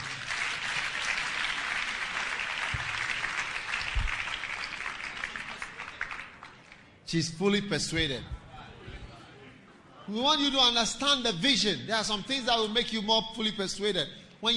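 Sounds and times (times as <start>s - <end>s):
crowd applause: 0.0s - 6.8s
speech: 7.1s - 8.4s, 10.1s - 14.5s.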